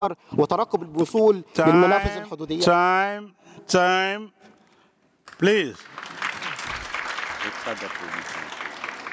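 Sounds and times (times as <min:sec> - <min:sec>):
speech: 0:00.0 - 0:04.5, 0:05.4 - 0:06.1, 0:07.4 - 0:08.6
audience applause: 0:05.3 - 0:09.1.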